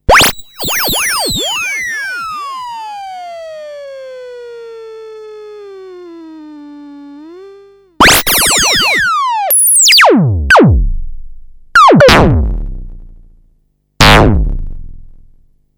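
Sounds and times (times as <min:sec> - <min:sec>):
zap sound: 0:00.1 - 0:02.6, 0:08.0 - 0:13.1, 0:14.0 - 0:15.3.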